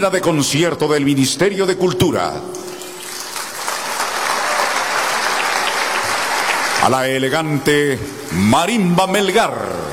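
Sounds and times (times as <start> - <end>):
speech: 0.0 - 2.7, 6.8 - 9.9
crowd applauding: 3.1 - 7.6.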